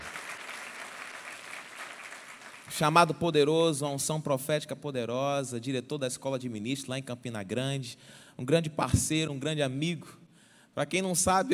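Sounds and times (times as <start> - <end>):
audience applause: 0.0 - 2.7
speech: 2.7 - 10.2, 10.8 - 11.5.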